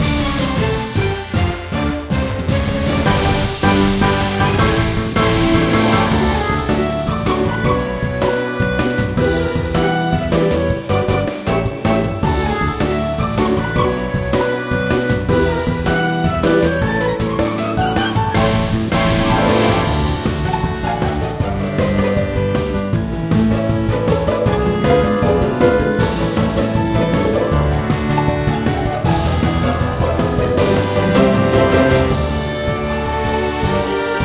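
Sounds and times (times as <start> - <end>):
battle music loop: 0.0 - 34.2.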